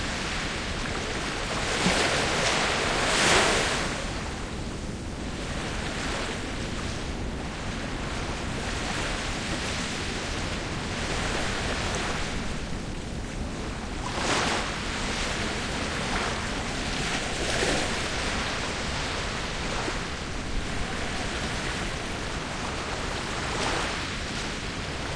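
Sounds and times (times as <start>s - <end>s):
sea waves: 0.0s - 25.1s.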